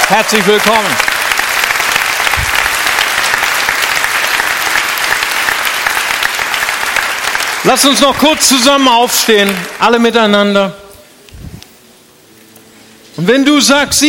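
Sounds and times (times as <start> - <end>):
audience clapping: 0.0 - 10.5
speech: 0.1 - 1.2, 7.6 - 10.8, 13.2 - 14.0.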